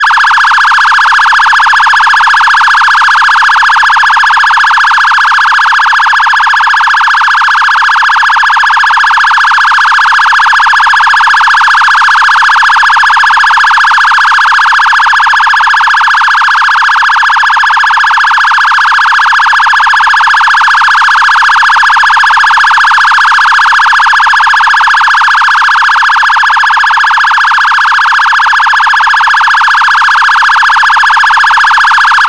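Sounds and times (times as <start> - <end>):
electronic phaser siren: 0.0 - 32.2.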